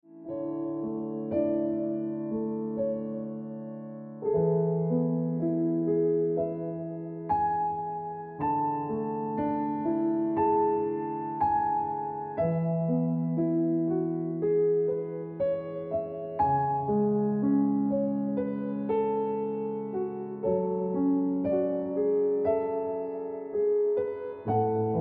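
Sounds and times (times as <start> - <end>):
piano music: 0.0 - 24.9.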